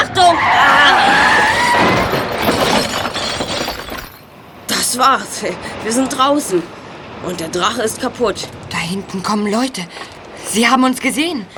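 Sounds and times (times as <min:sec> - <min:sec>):
car crashing through a wall: 0:00.1 - 0:04.5
debris crumbling: 0:00.4 - 0:04.8
glass shattering: 0:01.2 - 0:04.6
speech: 0:05.0 - 0:11.5.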